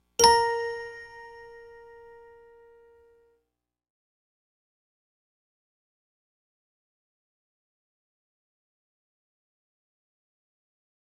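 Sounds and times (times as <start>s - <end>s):
Pandora bell tone: 0.2s - 2.8s.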